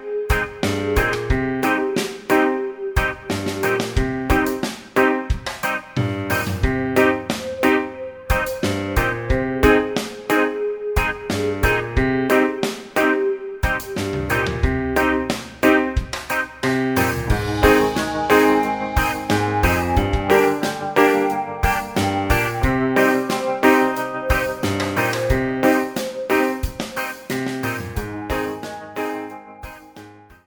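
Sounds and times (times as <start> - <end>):
bass backing track: 0.3 - 30.4.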